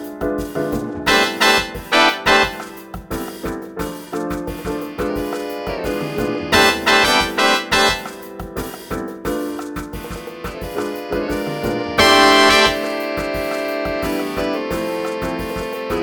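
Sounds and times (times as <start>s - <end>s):
Latin jazz band with bass: 0.0s - 16.0s.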